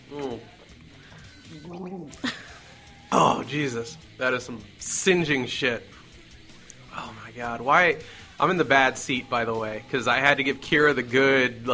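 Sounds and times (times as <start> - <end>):
person gargling: 0.0 - 0.6, 1.4 - 3.6
speech: 1.6 - 2.4, 3.5 - 5.9, 7.4 - 11.7.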